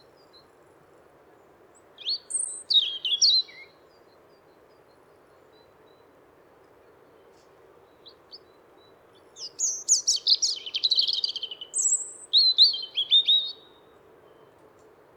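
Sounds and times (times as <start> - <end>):
European robin voice: 2.0 - 3.8, 7.9 - 14.5.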